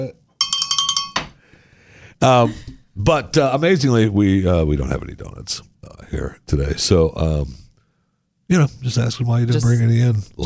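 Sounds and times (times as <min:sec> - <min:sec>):
speech: 0:00.0 - 0:00.2, 0:02.2 - 0:07.6, 0:08.5 - 0:10.4
small bell ringing: 0:00.4 - 0:01.4.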